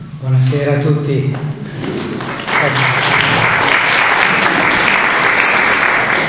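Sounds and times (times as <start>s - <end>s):
speech: 0.3s - 1.8s, 2.6s - 3.0s
audience applause: 1.8s - 6.2s.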